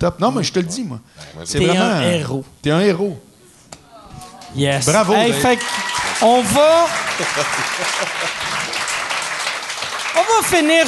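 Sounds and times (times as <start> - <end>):
speech: 0.0 - 3.3, 4.5 - 8.8, 10.2 - 10.8
small group clapping pity applause: 4.4 - 10.8
laughter: 6.8 - 9.1.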